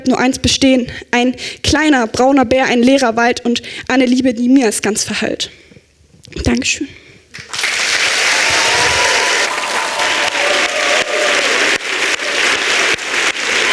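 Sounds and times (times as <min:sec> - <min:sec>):
speech: 0:00.0 - 0:05.7, 0:06.3 - 0:07.7
audience applause: 0:07.3 - 0:13.7.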